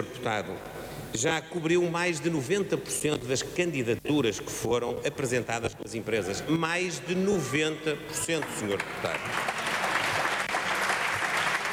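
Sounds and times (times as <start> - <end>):
speech: 0.0 - 9.6
applause from the PSD bench in a parliamentary chamber: 8.3 - 11.7.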